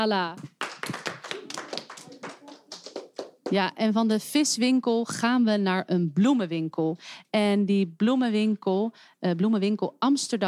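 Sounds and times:
speech: 0.0 - 0.5, 3.5 - 10.4
audience applause: 0.6 - 3.6.

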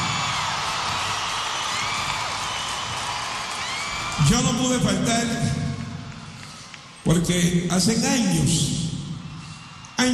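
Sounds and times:
crowd applause: 0.0 - 5.4, 6.0 - 7.0, 9.4 - 10.1
crowd cheering and whooping: 0.0 - 7.0, 9.1 - 10.1
speech: 4.3 - 5.6, 7.1 - 8.8.

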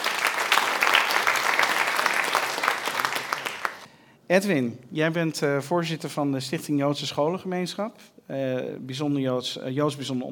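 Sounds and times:
audience applause: 0.0 - 3.9
speech: 4.3 - 10.3.

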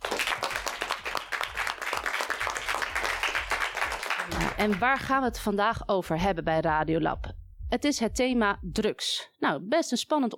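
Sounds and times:
audience applause: 0.0 - 4.9
speech: 4.6 - 10.3.

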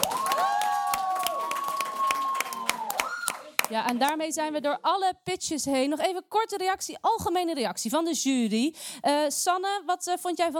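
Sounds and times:
audience applause: 0.0 - 3.8
speech: 3.7 - 10.5.

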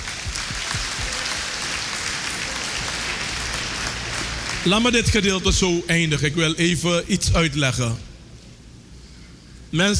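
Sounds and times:
crowd applauding: 0.0 - 5.4
speech: 4.6 - 8.1, 9.7 - 9.9.

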